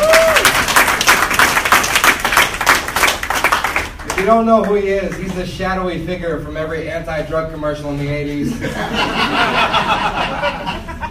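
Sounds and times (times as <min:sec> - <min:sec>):
audience applause: 0:00.0 - 0:04.3
speech: 0:04.2 - 0:10.8
laughter: 0:08.4 - 0:11.0.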